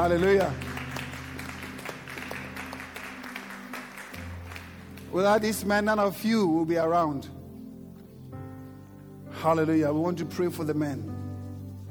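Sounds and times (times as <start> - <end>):
speech: 0.0 - 0.7, 5.1 - 7.4, 9.4 - 11.2
audience clapping: 0.0 - 5.6.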